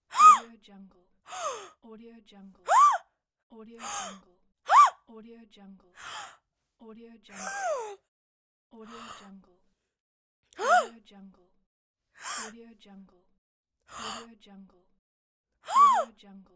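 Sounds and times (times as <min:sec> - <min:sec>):
woman gasping: 0:00.1 - 0:00.5, 0:01.3 - 0:01.7, 0:02.7 - 0:03.0, 0:03.8 - 0:04.9, 0:06.0 - 0:06.4, 0:07.4 - 0:08.0, 0:10.6 - 0:10.9, 0:12.2 - 0:12.5, 0:13.9 - 0:14.3, 0:15.7 - 0:16.1.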